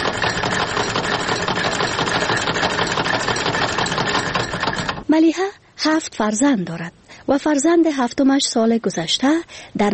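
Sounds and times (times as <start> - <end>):
sewing machine running during tailoring work at a women's treatment centre: 0.0 - 5.1
speech: 5.2 - 9.9.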